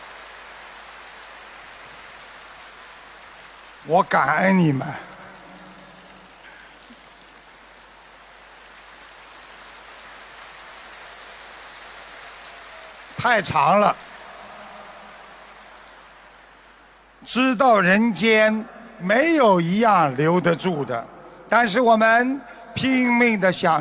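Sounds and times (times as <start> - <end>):
audience applause: 0.0 - 18.6
speech: 3.8 - 5.1, 13.2 - 14.0, 17.2 - 23.7.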